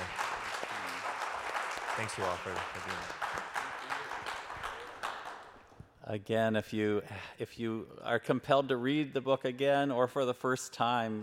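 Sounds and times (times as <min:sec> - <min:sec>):
audience applause for panelists: 0:00.0 - 0:05.8
speech: 0:02.0 - 0:03.6, 0:06.1 - 0:11.2.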